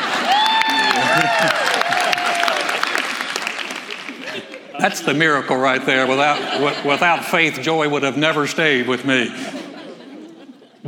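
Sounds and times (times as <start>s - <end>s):
voices whooping and cheering: 0.0s - 3.0s
crowd applause: 0.0s - 4.9s
laughter: 0.0s - 7.7s, 8.7s - 10.8s
speech: 4.8s - 9.5s.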